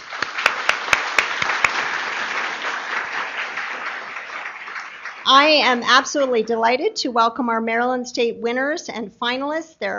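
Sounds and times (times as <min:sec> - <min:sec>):
crowd applause: 0:00.0 - 0:05.4
speech: 0:05.3 - 0:09.9.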